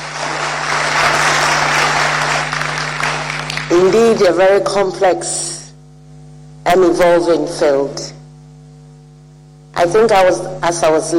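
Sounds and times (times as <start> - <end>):
audience clapping: 0.0 - 3.9
speech: 3.7 - 5.5, 6.7 - 8.2, 9.8 - 11.1.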